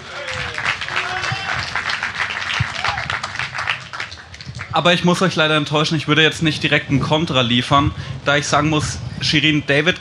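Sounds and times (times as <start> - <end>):
audience applause: 0.0 - 4.7
speech: 4.8 - 9.9.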